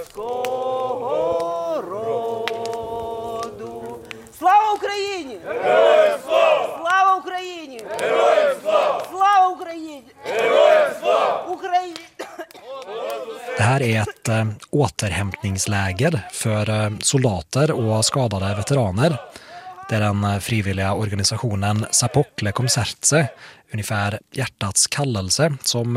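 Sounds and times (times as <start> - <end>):
soldiers singing the national anthem: 0.0 - 9.3, 10.2 - 11.6, 12.6 - 14.0, 17.8 - 19.8, 21.3 - 23.5
speech: 13.7 - 25.9.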